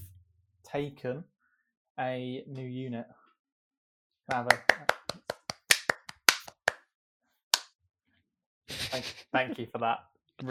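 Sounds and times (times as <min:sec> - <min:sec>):
speech: 0:00.7 - 0:01.3, 0:02.0 - 0:03.2, 0:04.3 - 0:04.9, 0:08.9 - 0:10.4
hand clapping: 0:04.3 - 0:06.8.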